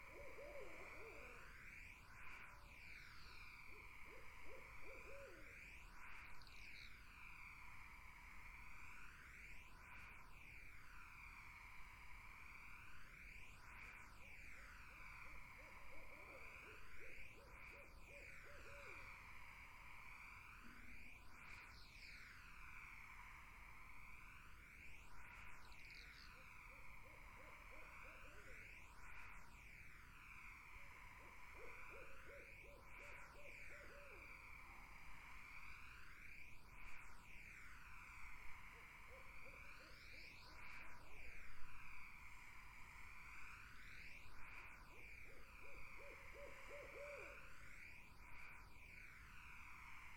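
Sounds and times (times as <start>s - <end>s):
barred owl hooting: 0.0s - 1.5s, 3.1s - 5.5s, 15.2s - 19.3s, 26.6s - 28.7s, 30.7s - 35.3s, 38.7s - 40.4s, 44.9s - 47.8s
insect chorus: 0.0s - 50.1s.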